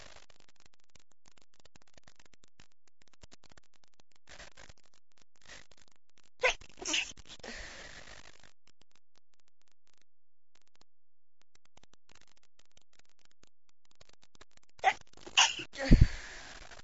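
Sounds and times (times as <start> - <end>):
woman being tickled: 6.4 - 7.9, 14.8 - 16.4.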